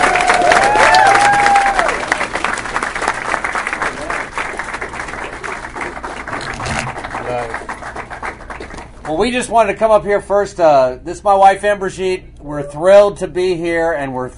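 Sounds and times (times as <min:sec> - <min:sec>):
audience applause: 0:00.0 - 0:09.3
speech: 0:09.1 - 0:14.3.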